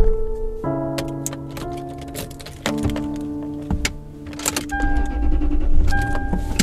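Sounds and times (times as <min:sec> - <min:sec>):
sharp clicks and rattles: 0:01.0 - 0:06.6
police car engine starting and driving off: 0:04.7 - 0:06.6.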